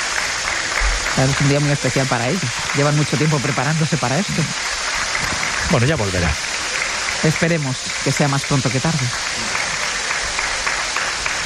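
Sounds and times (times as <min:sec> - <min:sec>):
audience applause at a special traditional occasion: 0:00.0 - 0:11.4
speech: 0:01.2 - 0:04.9, 0:05.7 - 0:06.5, 0:07.2 - 0:09.6.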